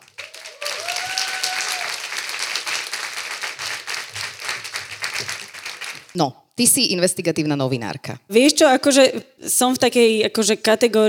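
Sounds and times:
audience applause at a Slovak stage event welcoming an investigative journalist: 0.0 - 6.2
speech: 6.2 - 11.0.

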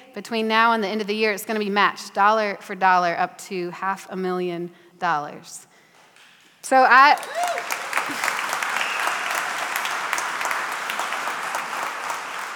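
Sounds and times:
speech: 0.2 - 5.7, 6.6 - 8.3
audience clapping: 7.1 - 12.5.

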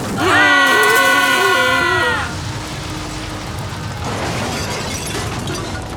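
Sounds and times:
massive stone structure crashing down: 0.0 - 5.9
rumble of crumbling rubble: 0.0 - 5.9
wavering scream-like cries: 0.1 - 2.4.

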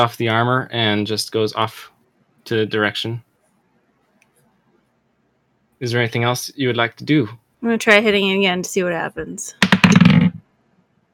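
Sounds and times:
speech: 0.0 - 3.3, 5.8 - 10.0
heavy die landing near microphone: 9.6 - 10.4.

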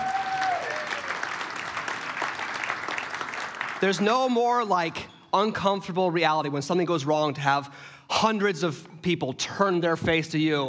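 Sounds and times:
crowd applause: 0.0 - 3.8
speech: 3.8 - 10.6.

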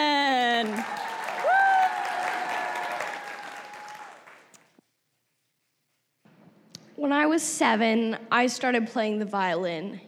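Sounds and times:
audience applause greeting a storyteller at a storytelling event: 0.4 - 4.5
speech: 7.3 - 10.0.

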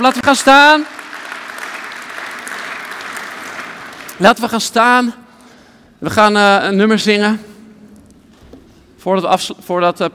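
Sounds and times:
speech: 0.0 - 1.0, 4.2 - 5.2, 6.0 - 7.5, 9.0 - 10.1
audience applause: 0.0 - 4.2.

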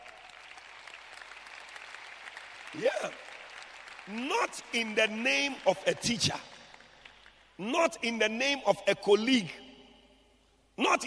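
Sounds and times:
audience clapping: 0.0 - 7.6
speech: 2.7 - 3.3, 4.1 - 6.5, 7.6 - 9.6, 10.8 - 11.0.

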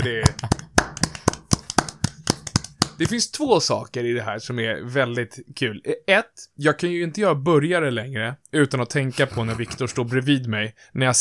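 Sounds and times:
speech: 0.0 - 0.5, 3.0 - 11.1
laughter: 0.0 - 0.8, 9.1 - 10.2
hand clapping: 0.0 - 3.2.

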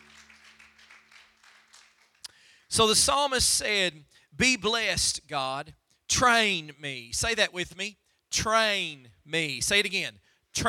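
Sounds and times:
audience clapping hands: 0.0 - 2.7
speech: 2.7 - 10.6.

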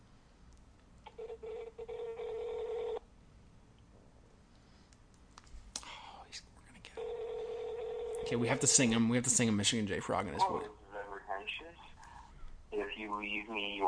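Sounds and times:
phone on speaker dialing tones: 1.1 - 3.0, 7.0 - 8.3
phone on speaker ringing: 1.1 - 3.0, 7.0 - 8.8
speech: 8.3 - 10.8, 13.1 - 13.8.

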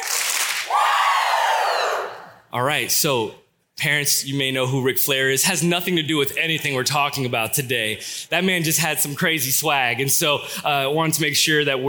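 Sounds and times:
audience clapping: 0.0 - 0.8
audience shouting woo: 0.7 - 2.3
speech: 2.5 - 11.8.

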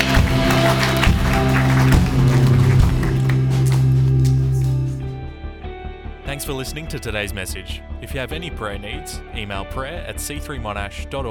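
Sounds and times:
audience clapping: 0.0 - 5.2
sustained keyboard chords: 0.0 - 10.7
speech: 6.4 - 11.2.

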